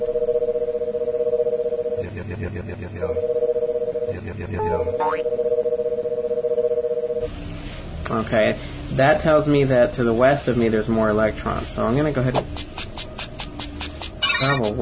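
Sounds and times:
two-tone drone: 0.0 - 7.3
video game electronic scanning chirp sweeping downward in pitch: 0.0 - 7.3, 13.1 - 14.7
speech: 5.1 - 5.7, 8.2 - 12.6, 14.4 - 14.7.

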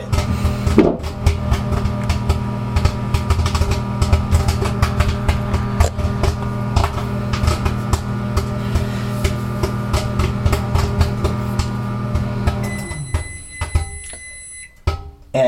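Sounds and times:
microwave humming: 0.0 - 15.4
popcorn popping in a microwave: 0.0 - 15.4
microwave electronic beeps: 12.6 - 14.8.

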